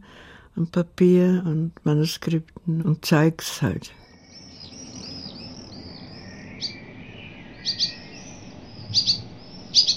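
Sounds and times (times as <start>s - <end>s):
speech: 0.6s - 4.0s
birds twittering: 3.9s - 9.9s.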